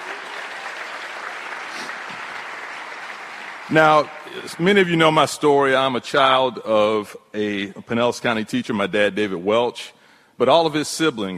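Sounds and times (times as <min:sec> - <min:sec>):
audience applause: 0:00.0 - 0:05.2
speech: 0:03.7 - 0:11.3.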